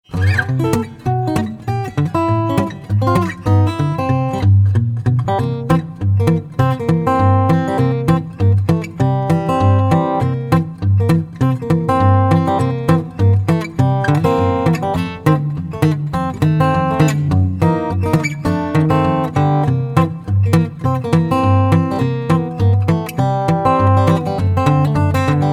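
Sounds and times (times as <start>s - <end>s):
blues music: 0.0s - 25.5s.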